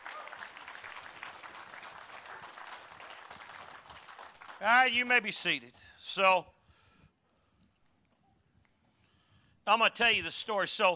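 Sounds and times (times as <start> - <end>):
audience applause: 0.0 - 5.2
speech: 4.6 - 6.5, 9.7 - 10.9.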